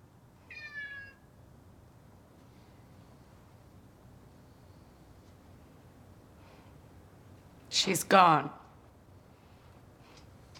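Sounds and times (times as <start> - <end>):
cat meowing: 0.5 - 1.2
speech: 7.8 - 8.6.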